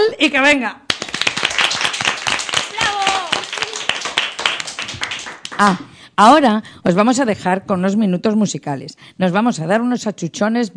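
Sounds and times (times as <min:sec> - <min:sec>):
speech: 0:00.2 - 0:00.8, 0:05.6 - 0:10.7
audience applause: 0:00.9 - 0:05.7.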